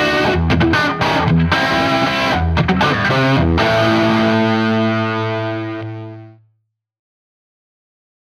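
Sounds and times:
Gibson Les Paul electric guitar through Marshall 2204 amplifier and Koch VG1290 cabinet: 0.0s - 6.4s.

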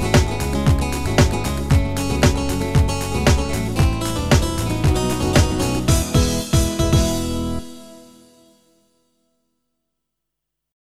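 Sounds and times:
Korg i3 keyboard style music: 0.0s - 8.6s.

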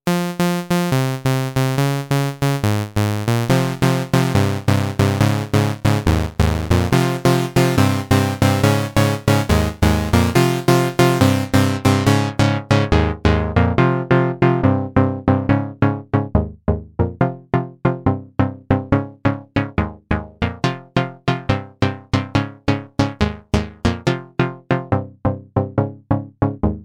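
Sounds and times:
chord sequence: 0.1s - 17.2s, 18.7s - 26.6s.

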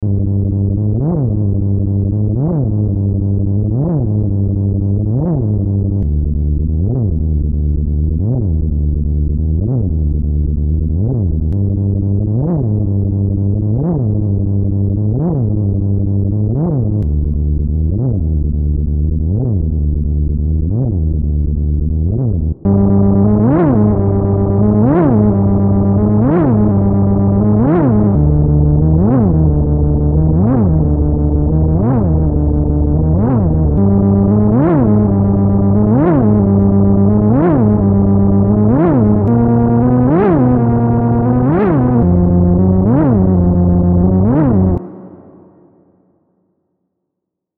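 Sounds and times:
Arturia CMI V additive synthesizer: 0.0s - 46.4s.

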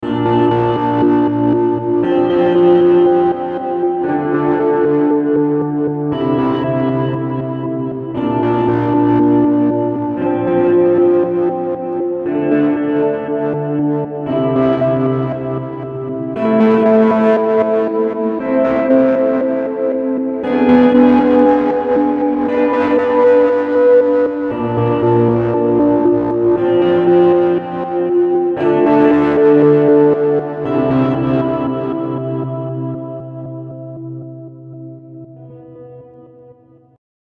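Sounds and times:
electric guitar through Seymour Duncan Dark Sun: 0.0s - 37.0s.

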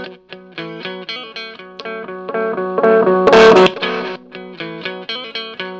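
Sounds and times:
delay swell: 1.8s - 4.3s.

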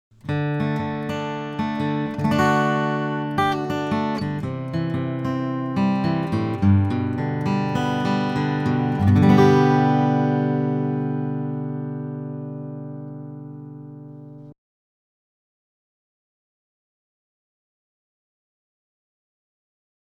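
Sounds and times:
guitar picking: 0.2s - 14.5s.

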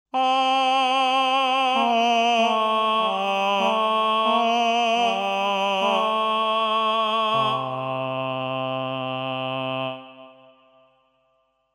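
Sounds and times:
Reason 10 Humana male tenor singing ah: 0.1s - 10.8s.

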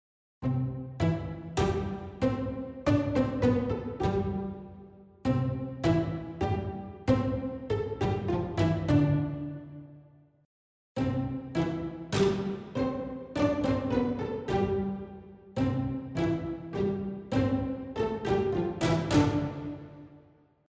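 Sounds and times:
string ensemble playing pizzicato: 0.4s - 10.0s, 11.0s - 20.2s.

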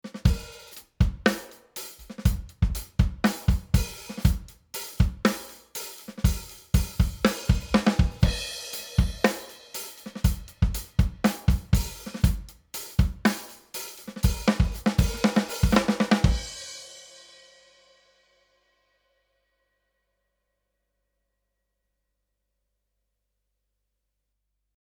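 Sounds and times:
quieter snare drum: 0.0s - 16.8s.

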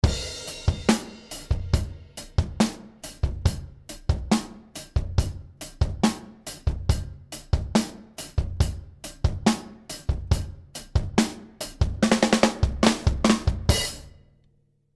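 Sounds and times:
drums with parallel processing: 0.0s - 14.2s.

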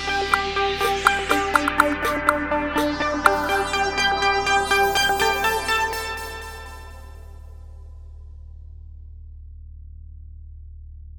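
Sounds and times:
naughty beats: 0.0s - 7.8s.

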